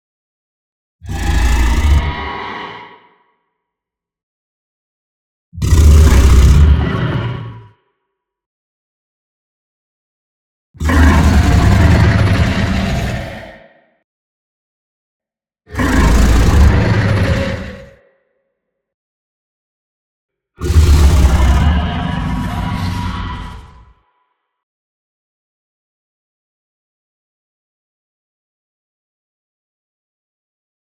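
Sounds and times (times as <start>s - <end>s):
dragon roar: 1.0s - 3.3s, 5.6s - 7.8s, 10.8s - 13.9s, 15.7s - 18.1s, 20.6s - 24.2s.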